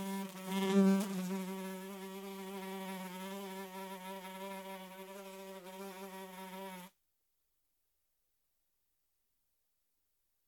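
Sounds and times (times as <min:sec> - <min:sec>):
fly wing buzz: 0:00.0 - 0:06.9.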